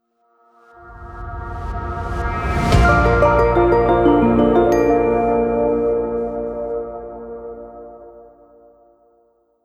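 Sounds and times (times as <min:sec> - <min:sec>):
corporate transition music: 0:02.8 - 0:08.4.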